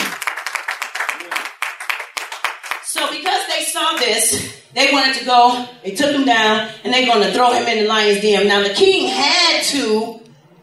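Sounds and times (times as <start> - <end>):
church congregation clapping in praise: 0.0 - 3.3
speech: 3.0 - 10.2.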